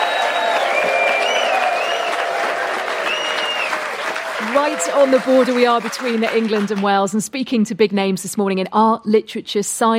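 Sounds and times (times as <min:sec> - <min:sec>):
festival audience applauding at the Hay Literary Festival in Hay-on-Wye: 0:00.0 - 0:07.1
speech: 0:04.6 - 0:09.9.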